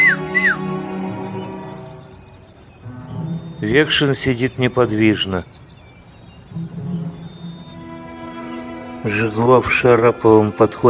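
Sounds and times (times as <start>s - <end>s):
person whistling: 0.0s - 2.2s
speech: 3.6s - 5.6s, 9.0s - 10.8s.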